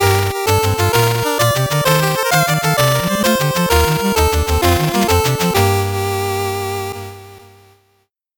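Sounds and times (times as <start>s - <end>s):
slow 8-bit jingle: 0.0s - 7.1s.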